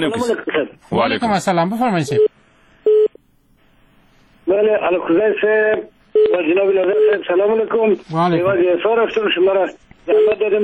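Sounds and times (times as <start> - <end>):
speech: 0.0 - 2.3, 4.5 - 10.6
telephone tones of a call connecting on a radio phone-in show: 2.1 - 3.2, 6.2 - 6.4, 7.0 - 7.2, 10.1 - 10.6.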